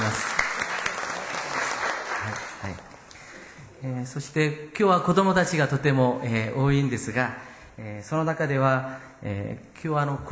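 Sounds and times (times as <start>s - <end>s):
audience applause welcoming guests: 0.0s - 3.2s
speech: 3.8s - 10.3s.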